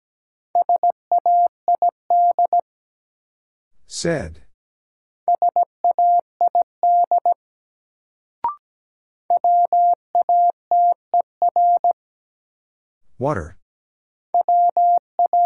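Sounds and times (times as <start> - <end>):
Morse code tones at 17 wpm: 0.6 - 2.6, 5.3 - 7.4, 9.3 - 12.0, 14.4 - 15.4
speech: 3.9 - 4.4, 13.2 - 13.6.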